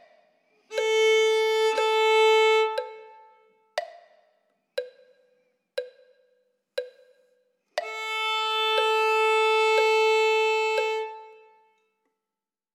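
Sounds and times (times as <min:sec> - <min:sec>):
first violin playing: 0:00.7 - 0:03.5, 0:07.8 - 0:11.8.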